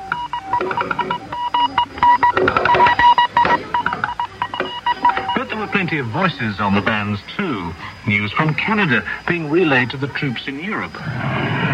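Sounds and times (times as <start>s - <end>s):
Morse code transmission tapping: 0.0s - 7.0s
speech: 5.9s - 11.7s.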